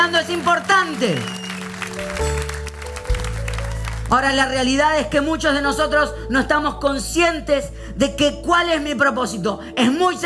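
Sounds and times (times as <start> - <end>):
applause: 0.0 - 4.8
speech: 0.4 - 1.4, 4.1 - 10.2.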